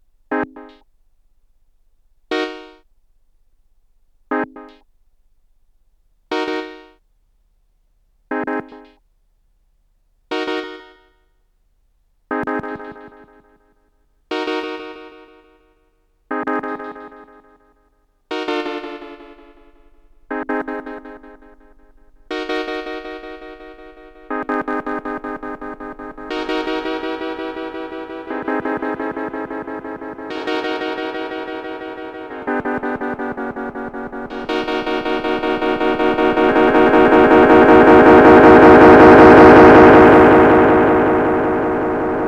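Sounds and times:
delay effect: 18.5 - 42.2.

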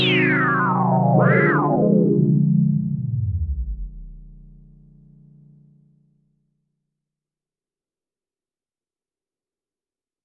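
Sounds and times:
OB6 and P6 synth saw wave filter resonance comparison: 0.0 - 5.7.

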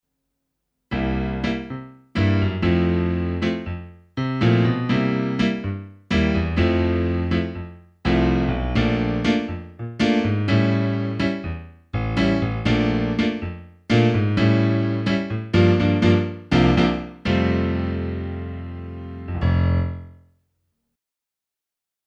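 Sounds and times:
piano: 0.9 - 20.3.

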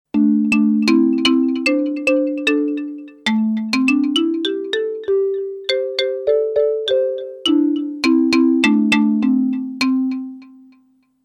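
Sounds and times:
marimba lead melody: 0.1 - 10.7.

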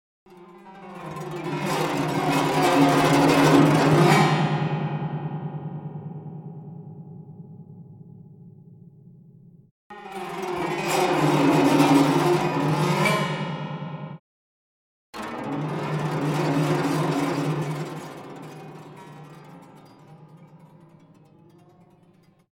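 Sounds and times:
guzheng effects: 0.3 - 5.1, 9.9 - 13.0, 15.2 - 22.5.

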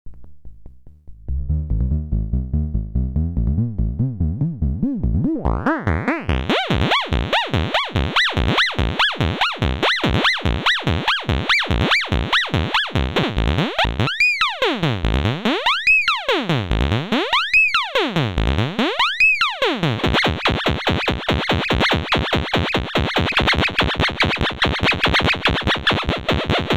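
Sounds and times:
CV FM synth bassline: 0.1 - 26.7.

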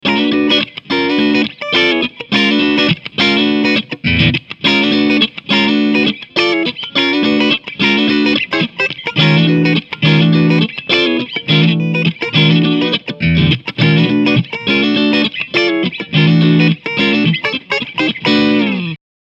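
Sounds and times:
funk amplifier: 0.0 - 19.0.

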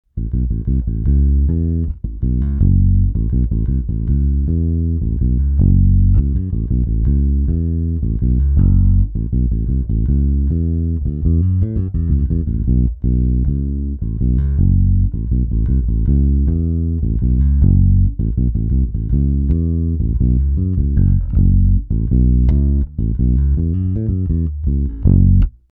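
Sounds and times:
Spector PJ bass guitar with bass boost: 0.0 - 25.7.

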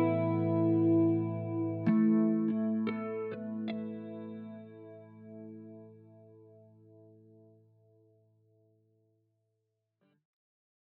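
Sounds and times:
Les Paul clean chorus electric guitar: 0.0 - 7.9.

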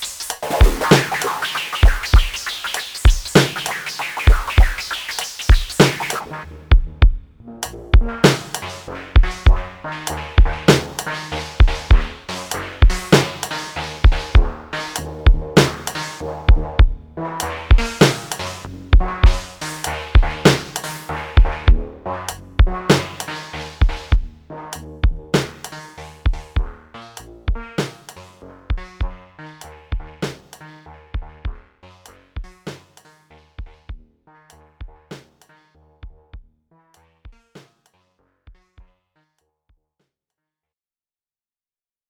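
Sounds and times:
Drumtraks drum machine beat: 0.0 - 7.2, 9.2 - 9.7, 11.6 - 12.1, 14.1 - 14.5, 19.0 - 19.5
Minibrute synthesizer: 0.0 - 39.4.

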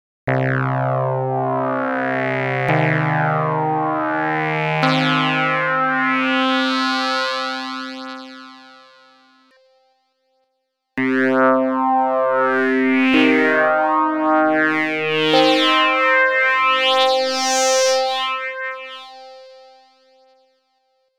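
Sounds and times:
linear and logarithmic filter FM synthesizer: 0.3 - 8.1, 11.0 - 19.1.

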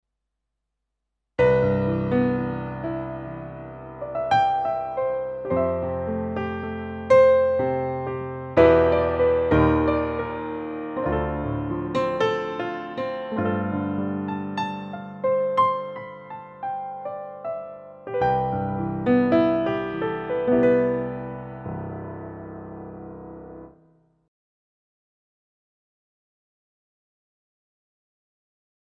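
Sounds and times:
Kurzweil Forte Rich 7ft Grand Piano: 1.4 - 23.9.

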